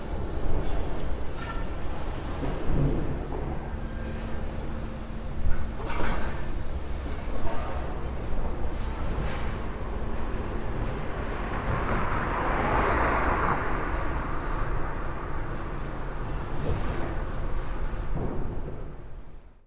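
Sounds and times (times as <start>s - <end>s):
scrapyard in Cologne: 0.0s - 19.5s.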